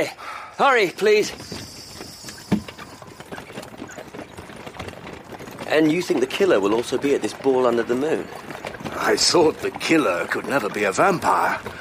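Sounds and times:
speech: 0.0 - 1.7, 5.7 - 11.7
faint rattling: 0.0 - 11.7
horse hooves clip-clopping drawing a hackney cab: 0.0 - 11.7.

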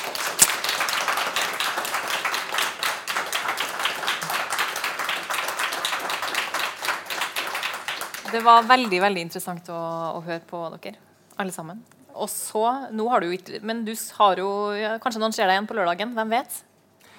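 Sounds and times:
audience applause: 0.0 - 9.0
speech: 8.3 - 16.7.

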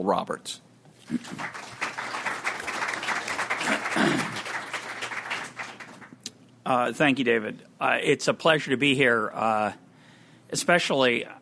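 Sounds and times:
speech: 0.0 - 1.8, 6.7 - 9.8, 10.5 - 11.3
audience applauding a speaker in an auditorium: 1.0 - 6.3.

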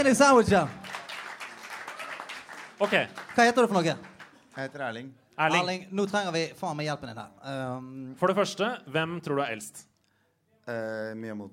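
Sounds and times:
speech: 0.0 - 0.8, 2.8 - 9.9, 10.7 - 11.5
audience applause: 0.6 - 4.4.

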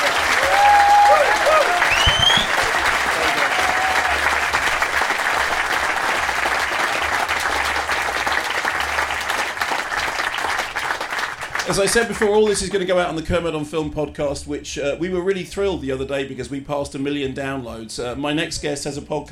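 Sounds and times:
whoops and cheers: 0.0 - 4.4
audience clapping: 0.0 - 12.6
speech: 11.7 - 19.2.

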